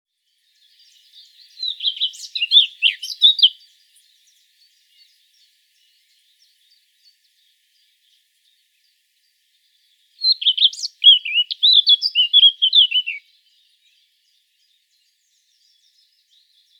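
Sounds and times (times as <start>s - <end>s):
Eurasian blackcap warbling song: 0.4s - 8.6s, 9.7s - 16.7s.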